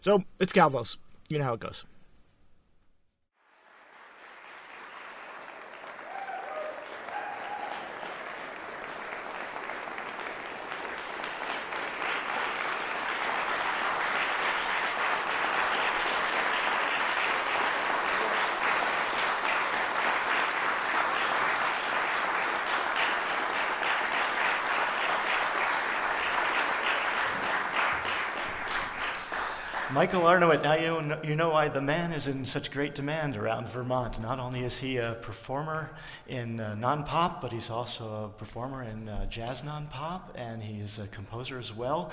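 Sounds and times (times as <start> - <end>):
speech: 0.0 - 1.9, 30.0 - 42.1
audience applause after a performance: 3.4 - 30.8.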